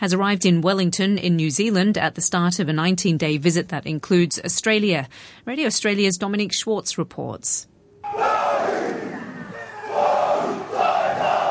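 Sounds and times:
speech: 0.0 - 7.8
Maori haka performed by school students as an official welcome: 8.0 - 11.4.

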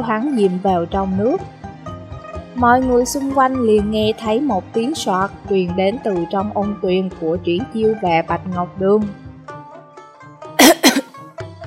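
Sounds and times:
speech: 0.0 - 1.6, 2.6 - 9.2
man in a hot spring coughing: 10.6 - 11.2.

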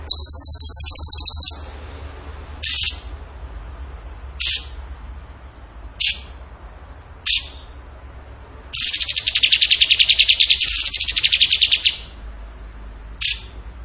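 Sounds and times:
bird trill and chips: 0.0 - 1.8, 2.6 - 3.2, 4.4 - 4.8, 6.0 - 6.4, 7.2 - 7.7, 8.8 - 12.2, 13.2 - 13.6.

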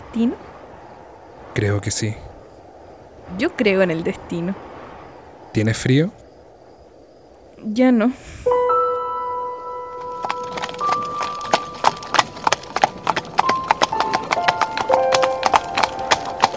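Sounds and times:
speech: 0.1 - 0.5, 1.6 - 2.3, 3.3 - 4.7, 5.5 - 6.2, 7.6 - 8.6
bright ringing tones: 8.5 - 16.5
horse hooves of a horse-drawn coach clip-clopping: 8.9 - 16.5.

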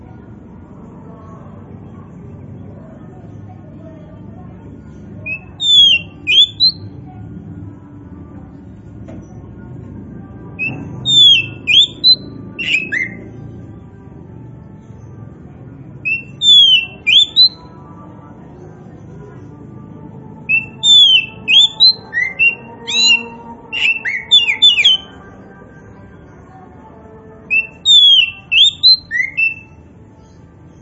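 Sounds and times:
Oriental magpie-robin whistled song: 5.2 - 6.9, 10.6 - 13.4, 16.0 - 17.7, 20.5 - 25.2, 27.5 - 30.8.

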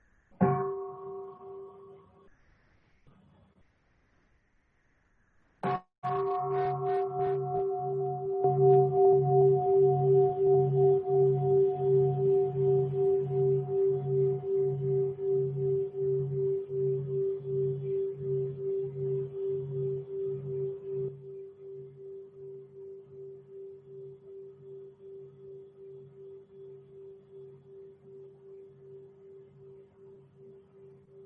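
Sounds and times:
meditation bell ringing: 6.0 - 21.2.

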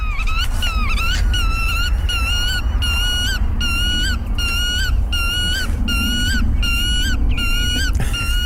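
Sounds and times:
black-tailed godwit calls: 0.0 - 8.4.

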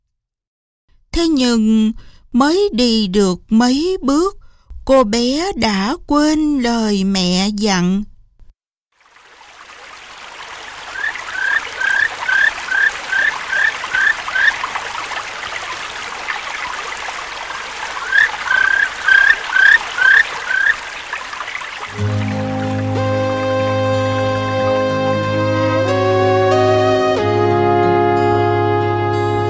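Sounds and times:
speech: 1.2 - 8.1
babbling stream at the edge of a forest: 9.0 - 23.8
bird repeating quick high chirps: 10.9 - 15.0, 17.5 - 22.7
bright sustained musical passage: 21.9 - 29.4.

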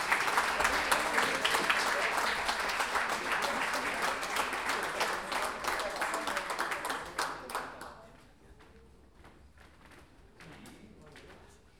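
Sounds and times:
crowd at a tournament applauding the participants: 0.0 - 8.1.

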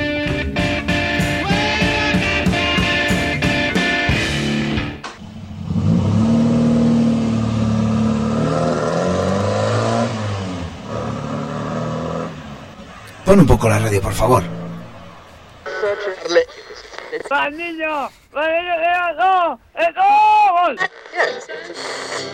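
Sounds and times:
car engine starting, revving and driving off: 0.0 - 15.7
speech: 13.3 - 14.6, 17.3 - 22.3.

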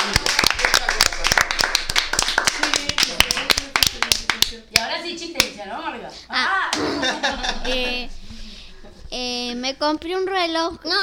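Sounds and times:
small group clapping: 0.0 - 5.6
speech: 5.6 - 6.5, 9.1 - 11.0
laughter: 6.8 - 8.1.

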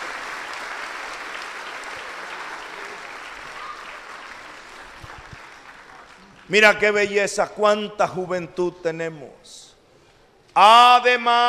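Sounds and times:
audience applause for young people at a Sunday church service: 0.0 - 6.5
speech: 6.5 - 9.7, 10.6 - 11.4.

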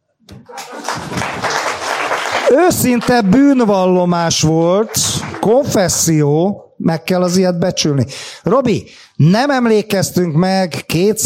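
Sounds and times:
speech: 0.4 - 1.1, 2.5 - 11.2
applause: 0.4 - 6.0.

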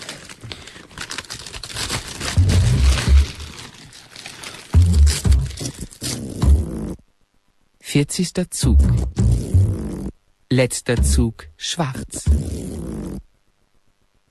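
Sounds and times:
plastic sack crinkling: 0.0 - 6.4
tape pulled off a roll: 0.0 - 6.9
speech: 8.0 - 9.4, 10.6 - 13.3.

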